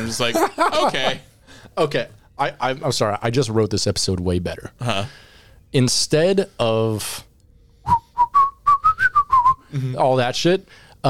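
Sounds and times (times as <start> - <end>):
laughter: 0.0 - 1.7
speech: 0.1 - 7.3, 9.7 - 11.0
person whistling a guitar solo phrase: 7.8 - 9.7.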